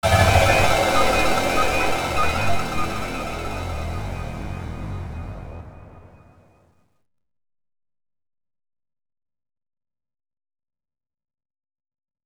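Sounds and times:
music sting: 0:00.0 - 0:06.5.

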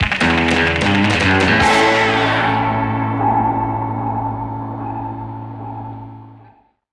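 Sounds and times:
goal fanfare: 0:00.0 - 0:05.2.

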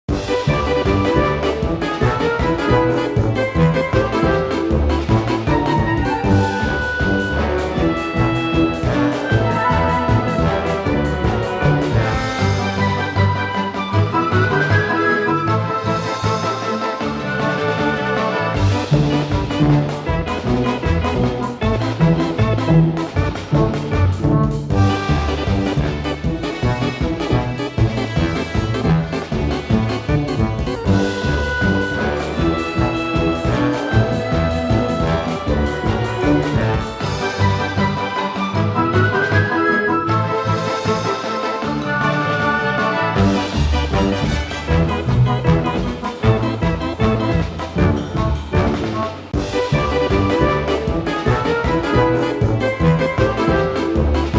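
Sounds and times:
hoedown music: 0:00.1 - 0:54.3.

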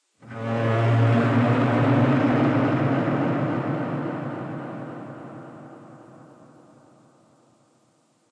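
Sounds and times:
combat string music: 0:00.2 - 0:04.4.

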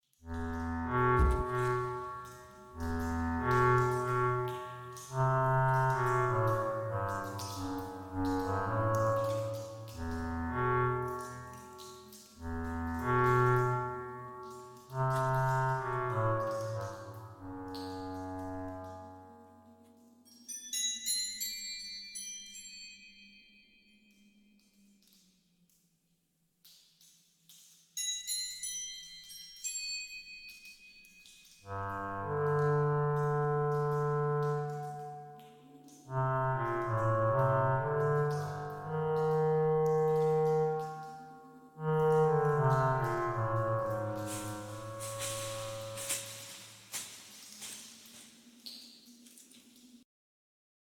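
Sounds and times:
ambient music: 0:00.2 - 0:20.2, 0:31.7 - 0:48.9.

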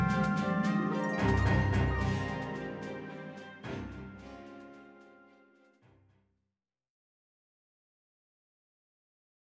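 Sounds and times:
battle music: 0:00.0 - 0:05.4.

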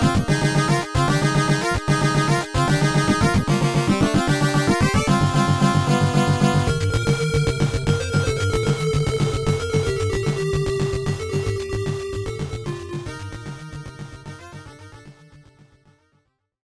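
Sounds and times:
stage background music: 0:00.0 - 0:11.8.

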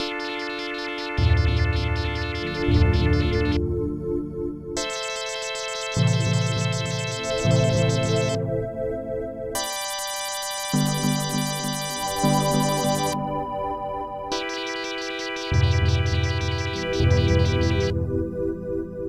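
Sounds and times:
electronic music: 0:00.0 - 0:08.9, 0:09.6 - 0:19.0.

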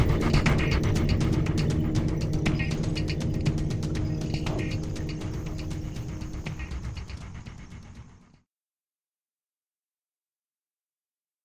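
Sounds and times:
suspense music: 0:00.0 - 0:08.4.

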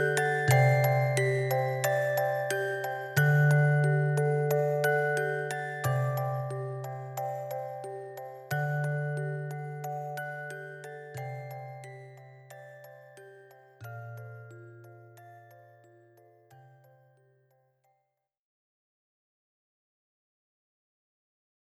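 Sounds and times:
music box version: 0:00.0 - 0:17.3.

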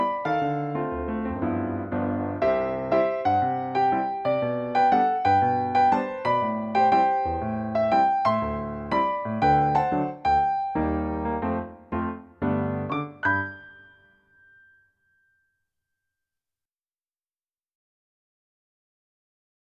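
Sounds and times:
piano arrangement: 0:00.0 - 0:14.8.

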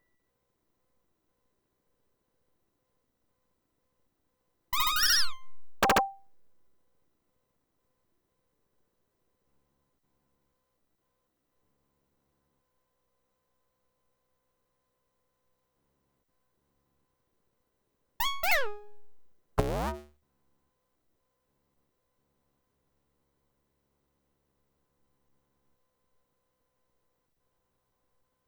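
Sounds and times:
button click: 0:04.8 - 0:06.2, 0:18.2 - 0:20.1.

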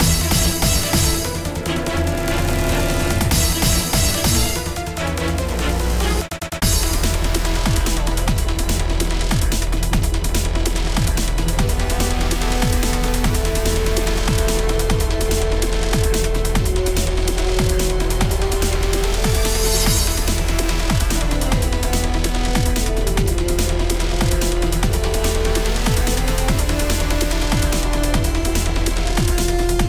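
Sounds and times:
boss battle game music: 0:00.0 - 0:29.8.

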